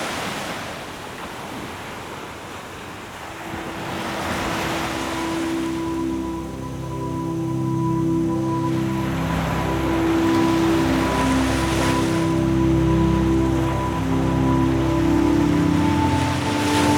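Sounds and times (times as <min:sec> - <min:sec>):
ocean: 0:00.0 - 0:16.9
relaxation music: 0:03.5 - 0:16.9.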